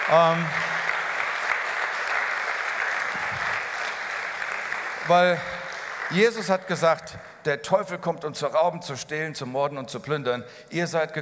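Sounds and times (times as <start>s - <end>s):
audience applause: 0.0s - 7.0s
speech: 0.1s - 0.6s, 5.1s - 11.1s.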